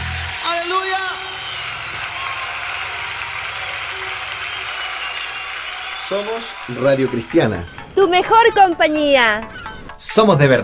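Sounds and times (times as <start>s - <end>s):
audience applause: 0.0s - 8.0s
speech: 6.1s - 10.6s.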